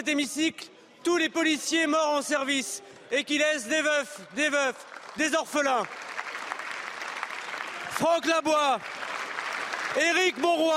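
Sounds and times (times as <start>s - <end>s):
speech: 0.0s - 6.0s, 8.0s - 8.9s, 9.9s - 10.7s
applause in the parliament chamber: 4.4s - 10.7s.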